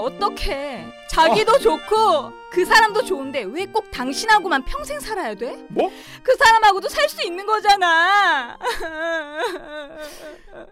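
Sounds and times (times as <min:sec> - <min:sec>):
speech: 0:00.0 - 0:10.7
person whimpering and crying: 0:08.6 - 0:10.7.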